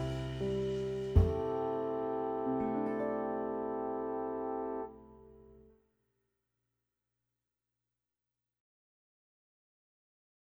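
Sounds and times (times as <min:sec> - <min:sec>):
slow swing music: 0:00.0 - 0:05.4.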